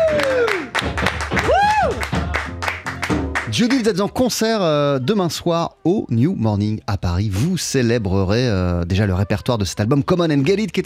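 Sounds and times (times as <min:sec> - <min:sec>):
whoops and cheers: 0:00.0 - 0:02.5
audience applause: 0:00.0 - 0:04.0
speech: 0:03.6 - 0:10.8.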